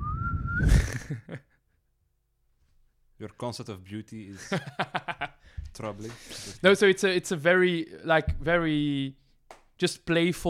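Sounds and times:
person whistling in imitation of a kettle's bird-shaped spout: 0.0s - 1.0s
speech: 3.2s - 5.1s, 5.8s - 9.2s, 9.8s - 10.4s.

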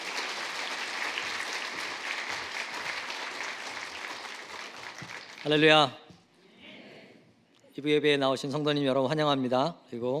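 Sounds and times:
crowd applauding: 0.0s - 5.8s
speech: 5.4s - 6.0s, 7.8s - 10.1s.

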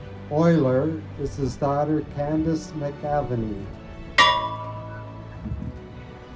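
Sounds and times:
speech: 0.3s - 3.8s
memorial bell being rung: 4.2s - 5.4s.

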